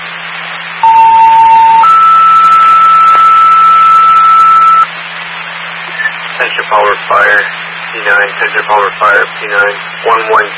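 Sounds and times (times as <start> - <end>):
two-part radio dispatch alert tone: 0.8 - 4.9
radio static and hum: 0.8 - 10.5
speech: 6.7 - 10.5.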